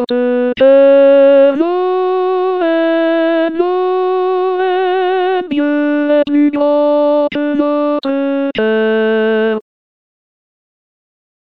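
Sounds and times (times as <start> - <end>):
alto singing a chorale: 0.0 - 9.6.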